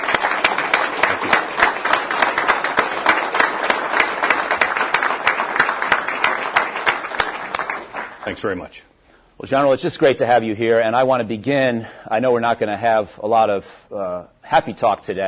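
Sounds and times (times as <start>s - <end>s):
crowd applauding: 0.0s - 8.5s
speech: 8.3s - 15.2s.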